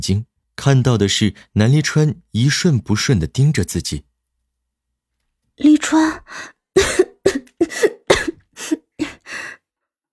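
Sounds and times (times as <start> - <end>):
speech: 0.0 - 4.1, 5.6 - 8.0
coughing: 6.8 - 9.3.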